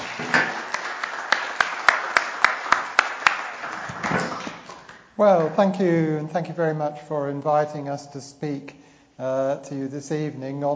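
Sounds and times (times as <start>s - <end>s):
audience applause: 0.0s - 5.6s
speech: 5.2s - 10.7s.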